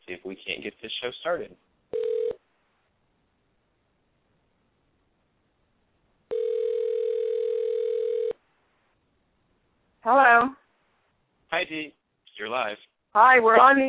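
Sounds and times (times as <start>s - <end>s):
speech: 0.6s - 1.8s, 11.7s - 13.8s
telephone tone over the line: 1.9s - 2.4s, 6.3s - 8.4s.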